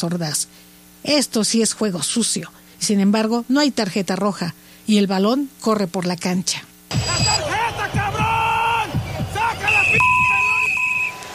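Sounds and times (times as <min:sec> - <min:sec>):
speech: 0:00.0 - 0:07.5
referee's final whistle: 0:06.9 - 0:11.3.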